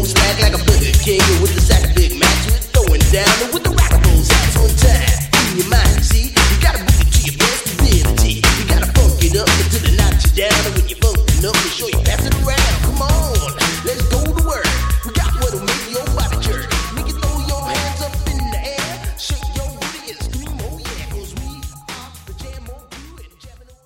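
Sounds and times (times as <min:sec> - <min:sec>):
80s hip hop drum beat: 0:00.0 - 0:23.8.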